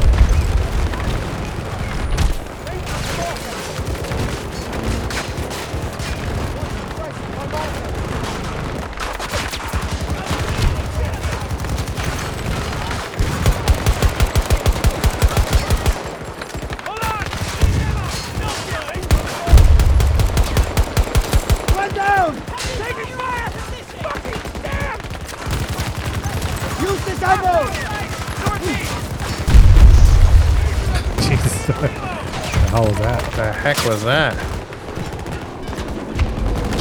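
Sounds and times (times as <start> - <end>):
video game automatic gunfire and single shots: 0.0 - 36.7
video game heavy booms: 19.2 - 21.8, 29.5 - 33.0
laughter: 30.9 - 33.8.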